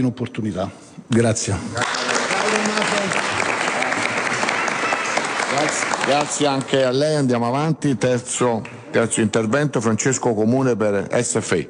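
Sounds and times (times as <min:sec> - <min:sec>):
speech: 0:00.0 - 0:03.3, 0:05.6 - 0:11.6
audience applause: 0:01.8 - 0:07.0.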